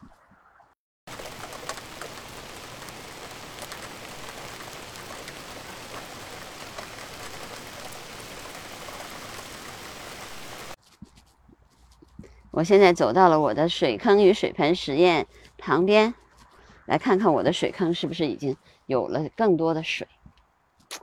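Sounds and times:
rain: 1.1s - 10.8s
speech: 12.6s - 16.2s, 16.9s - 20.1s.

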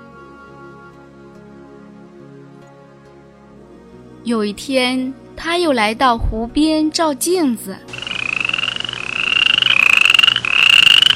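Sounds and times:
speech: 4.2s - 8.1s
toad croaking: 7.9s - 11.1s.

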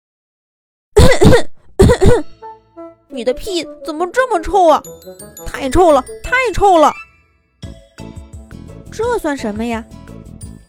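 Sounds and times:
coughing: 1.0s - 2.5s
speech: 1.4s - 2.3s, 3.1s - 7.0s, 9.0s - 10.0s.

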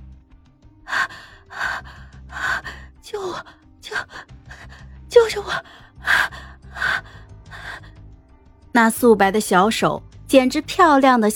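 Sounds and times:
woman gasping for breath: 0.9s - 8.0s
speech: 3.1s - 4.3s, 5.2s - 6.2s, 8.8s - 11.3s.

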